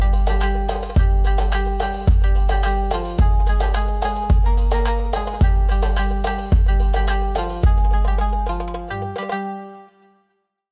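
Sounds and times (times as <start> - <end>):
Middle Eastern beat: 0.0 - 9.8.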